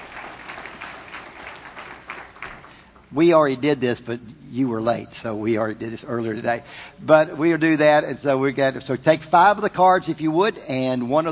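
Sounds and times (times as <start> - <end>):
audience applause: 0.0 - 3.0
speech: 3.1 - 11.3.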